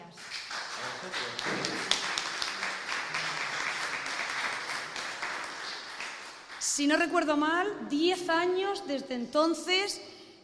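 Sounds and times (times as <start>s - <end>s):
audience applause: 0.2s - 6.6s
speech: 6.8s - 10.4s.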